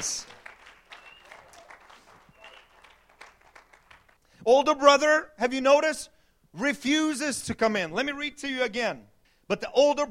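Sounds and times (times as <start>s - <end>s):
speech: 0.0s - 0.4s, 4.4s - 10.0s
audience clapping hands: 0.0s - 4.2s.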